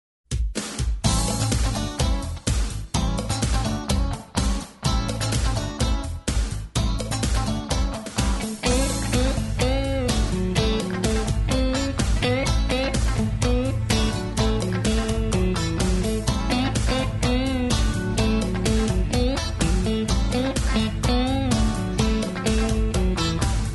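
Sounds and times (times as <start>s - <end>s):
funky cowboy square dance music: 0.3s - 23.7s.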